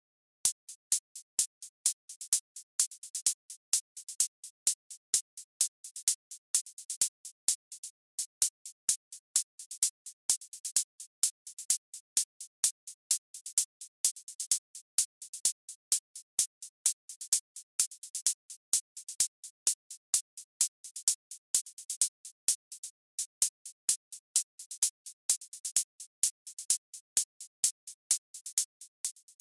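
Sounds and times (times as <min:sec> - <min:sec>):
hi-hat: 0:00.5 - 0:29.3.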